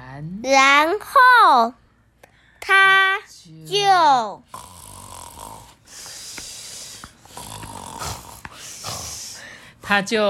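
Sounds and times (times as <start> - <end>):
speech: 0.2 - 1.8, 2.6 - 4.6, 9.9 - 10.2
snoring while falling asleep: 4.5 - 6.2, 6.8 - 9.4.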